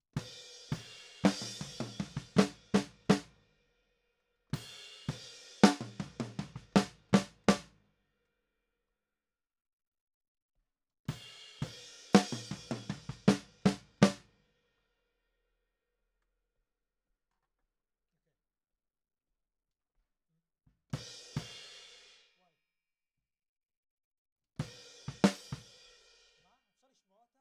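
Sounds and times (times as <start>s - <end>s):
snare drum: 0.7s - 3.3s, 5.1s - 7.6s, 12.1s - 14.2s, 25.1s - 25.6s.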